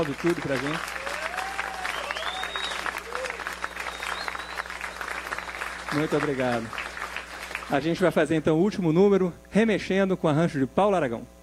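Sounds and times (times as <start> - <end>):
speech: 0.0 - 1.0, 5.9 - 6.8, 7.7 - 11.4
audience clapping: 0.0 - 8.1
cheers and whistles: 0.6 - 6.2.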